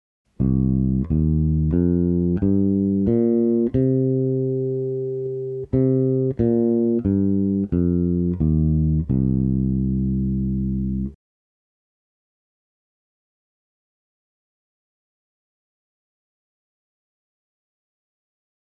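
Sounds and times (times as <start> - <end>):
minor pentatonic melody: 0.4 - 11.1.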